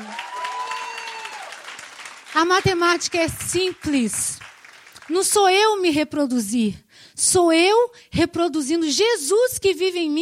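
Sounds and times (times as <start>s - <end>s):
cheering: 0.0s - 2.4s
audience applause: 0.0s - 5.2s
speech: 2.4s - 4.5s, 5.1s - 10.2s.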